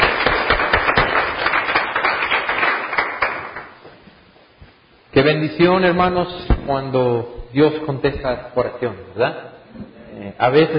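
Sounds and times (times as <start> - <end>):
audience applause: 0.0 - 3.8
speech: 5.2 - 10.7.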